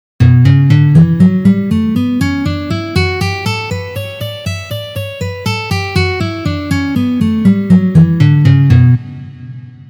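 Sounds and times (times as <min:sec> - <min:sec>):
three-note melody in D major in second position: 0:00.2 - 0:09.0.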